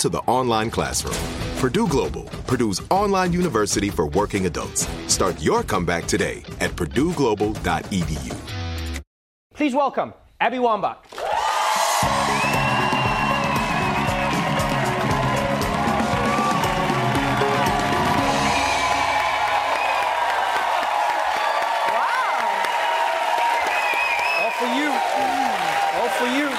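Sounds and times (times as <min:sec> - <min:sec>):
speech: 0:00.0 - 0:08.6, 0:09.6 - 0:11.2
talk-show studio audience standing ovation cheering and clapping: 0:11.1 - 0:26.5.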